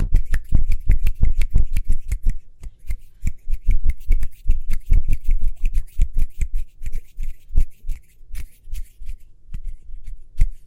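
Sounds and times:
hand taps, rubs and claps: 0:00.0 - 0:08.5.

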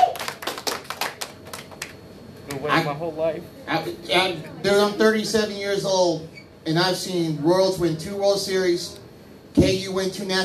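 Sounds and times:
hand clapping: 0:00.0 - 0:02.0
speech: 0:02.6 - 0:09.0, 0:09.6 - 0:10.4.

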